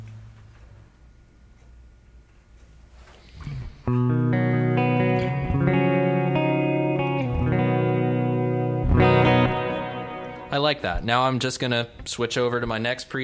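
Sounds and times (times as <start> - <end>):
electric guitar chords with heavy hall reverb: 3.4 - 11.1
speech: 3.9 - 4.3, 10.6 - 13.2.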